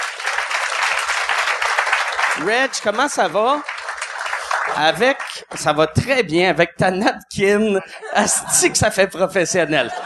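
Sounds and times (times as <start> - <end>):
audience applause: 0.0 - 5.8
speech: 2.4 - 3.7, 4.7 - 10.0
laughter: 7.5 - 10.0.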